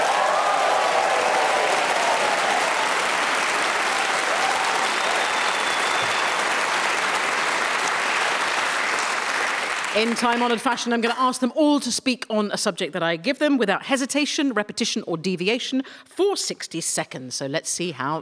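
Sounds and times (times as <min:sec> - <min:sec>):
cheers and whoops: 0:00.0 - 0:08.7
large audience applause: 0:00.0 - 0:10.8
speech: 0:10.0 - 0:18.2.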